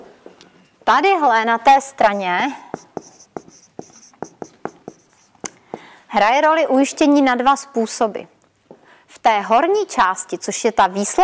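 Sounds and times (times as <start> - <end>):
speech: 0.9 - 2.7, 6.2 - 8.4, 9.3 - 11.2
pen strokes writing a single word by hand: 2.1 - 5.8.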